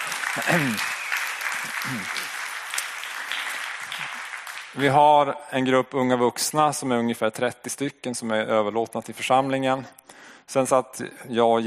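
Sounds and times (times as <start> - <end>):
audience applause: 0.0 - 5.0
speech: 0.4 - 1.0, 1.6 - 2.4, 4.7 - 11.6.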